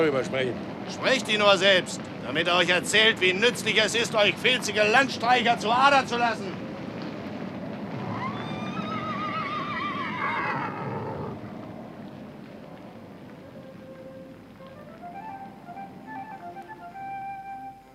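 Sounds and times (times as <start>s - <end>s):
speech: 0.0s - 6.6s
horses neighing: 8.0s - 11.4s.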